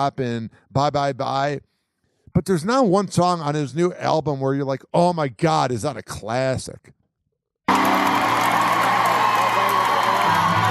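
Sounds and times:
speech: 0.0 - 1.7, 2.4 - 7.0
crowd cheering: 7.7 - 10.6.

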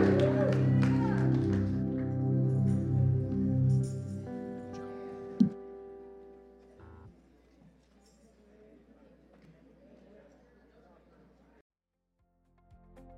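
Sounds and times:
audience shouting and clapping: 0.0 - 1.9
sustained organ-like chords: 0.0 - 7.1.

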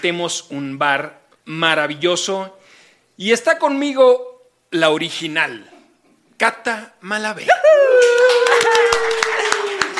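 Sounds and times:
speech: 0.0 - 5.7, 6.4 - 8.8
studio audience applause: 8.0 - 9.9.

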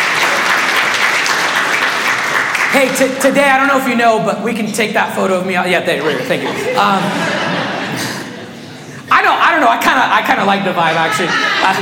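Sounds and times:
congregation applauding during a church sermon: 0.0 - 3.4
speech: 2.8 - 7.4, 9.6 - 11.8
laughter: 5.8 - 9.6, 10.3 - 11.8.

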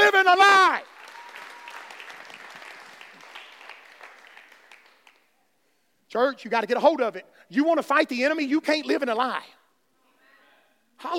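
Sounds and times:
crowd clapping: 0.7 - 5.3
speech: 6.1 - 9.6, 11.0 - 11.1.

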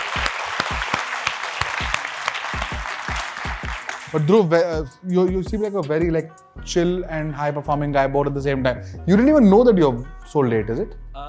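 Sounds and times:
audience round of applause: 0.0 - 4.3
speech: 4.1 - 11.0.

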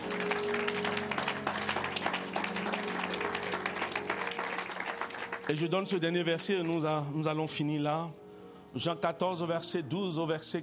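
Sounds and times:
congregation hand claps during a French-language church service: 0.0 - 5.7
speech: 5.5 - 10.6.

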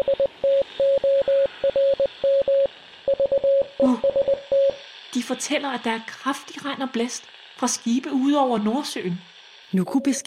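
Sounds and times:
telegraph beeps tapping out Morse code: 0.0 - 4.8, 9.8 - 10.2
speech: 5.3 - 10.2.

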